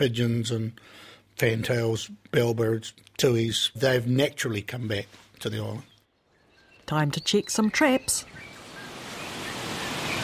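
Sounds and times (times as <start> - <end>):
speech: 0.0 - 5.9, 6.9 - 8.5
wind thrashing through tall rimu trees: 7.9 - 10.2.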